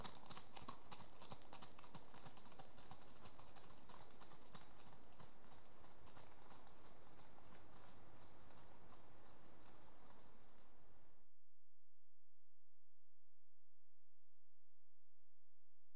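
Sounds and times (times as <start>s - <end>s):
two horses trotting on gravelly track: 0.0s - 10.8s.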